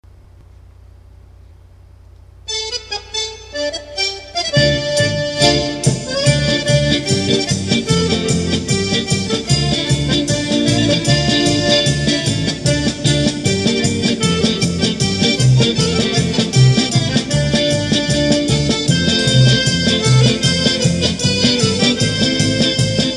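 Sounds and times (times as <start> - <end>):
Israeli folk dance music: 2.5 - 23.1.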